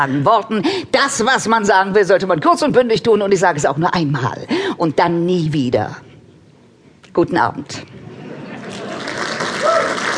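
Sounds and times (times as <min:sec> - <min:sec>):
speech: 0:00.0 - 0:06.1, 0:07.2 - 0:08.0
audience clapping: 0:08.6 - 0:10.1.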